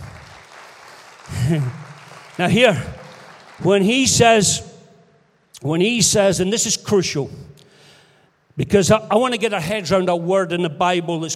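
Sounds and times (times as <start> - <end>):
audience applauding: 0.0 - 4.4
speech: 1.5 - 3.0, 3.6 - 4.7, 5.6 - 7.6, 8.6 - 11.3.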